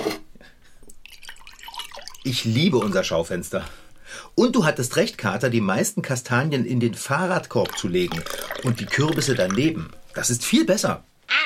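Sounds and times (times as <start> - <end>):
cocoa poured from a thermos into a cup: 0.9 - 3.5, 6.9 - 10.9
speech: 2.2 - 11.1.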